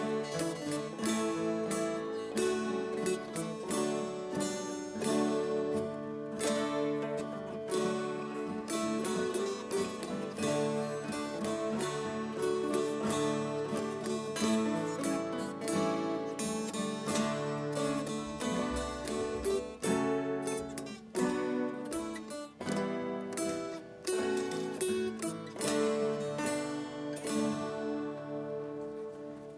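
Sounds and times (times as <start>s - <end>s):
guitar playing a folk tune: 0.0s - 29.5s
dulcimers playing a folk tune: 9.1s - 22.3s.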